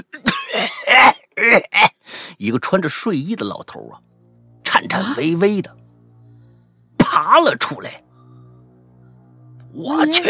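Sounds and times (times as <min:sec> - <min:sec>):
coughing: 0:00.0 - 0:02.0
speech: 0:02.4 - 0:04.1, 0:04.8 - 0:05.8, 0:07.1 - 0:08.0, 0:09.8 - 0:10.2.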